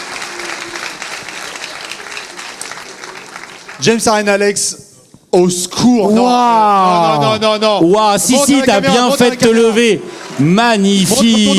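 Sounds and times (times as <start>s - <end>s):
audience applause: 0.0s - 4.3s, 8.9s - 11.5s
speech: 3.8s - 11.5s.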